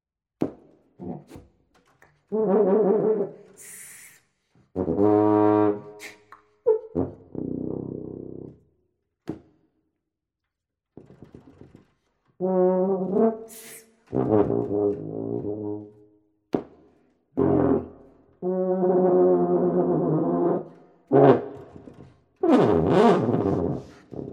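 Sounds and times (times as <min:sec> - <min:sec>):
solo tuba music: 0:02.3 - 0:03.7, 0:04.8 - 0:08.6, 0:12.4 - 0:16.0, 0:17.4 - 0:24.3.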